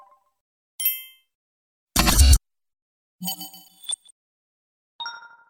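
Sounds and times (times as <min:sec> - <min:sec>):
high-tech user interface clicks: 0:02.0 - 0:02.4, 0:03.2 - 0:04.1.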